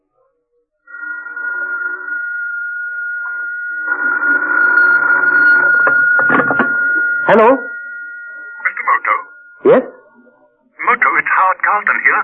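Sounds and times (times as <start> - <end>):
telephone ringing: 0.9 - 9.6
speech: 7.3 - 7.7, 9.6 - 9.9, 11.7 - 12.2.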